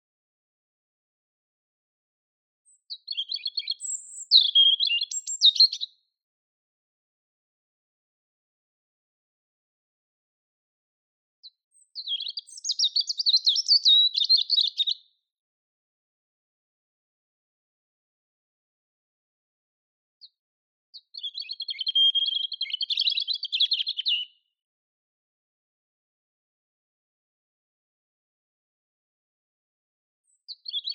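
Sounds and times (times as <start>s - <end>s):
European robin song of high twitters and thin whistles: 2.6s - 6.0s, 11.4s - 15.2s, 20.2s - 24.5s, 30.2s - 30.9s.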